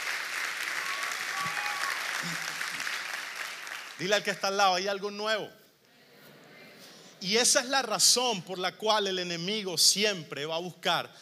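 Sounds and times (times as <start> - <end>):
loud audience applause: 0.0 - 4.2
speech: 2.2 - 2.6, 4.0 - 5.6, 7.2 - 11.1.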